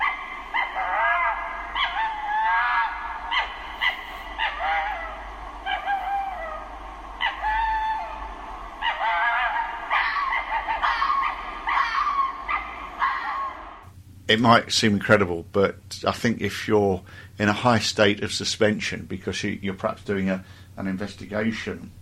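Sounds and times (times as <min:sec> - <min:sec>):
fox yipping cries: 0:00.0 - 0:08.2, 0:08.8 - 0:13.8
speech: 0:14.3 - 0:22.0.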